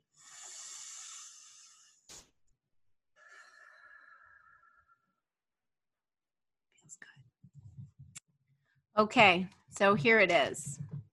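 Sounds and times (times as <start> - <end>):
deep breath taken during a kids' craft show: 0.0 - 2.1, 3.2 - 5.0
speech: 9.0 - 10.8.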